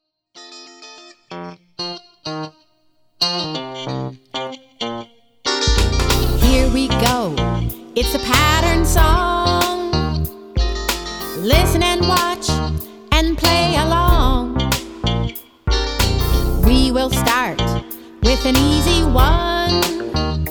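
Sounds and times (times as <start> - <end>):
song: 5.6 - 20.4.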